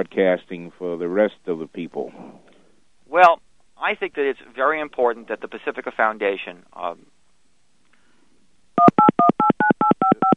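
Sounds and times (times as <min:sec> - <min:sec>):
speech: 0:00.0 - 0:02.4, 0:03.1 - 0:07.1
telephone touch-tone beeps: 0:08.8 - 0:10.3.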